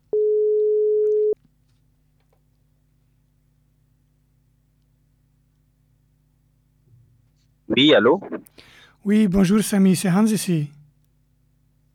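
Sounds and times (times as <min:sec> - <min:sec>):
telephone ringing tone while calling: 0:00.2 - 0:01.4
speech: 0:07.8 - 0:10.8.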